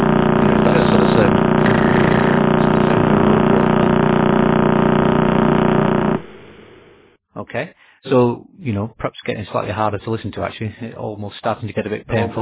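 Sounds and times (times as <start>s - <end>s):
pulsar recording rapid pulsing buzz: 0.0s - 7.1s
speech: 7.6s - 12.4s.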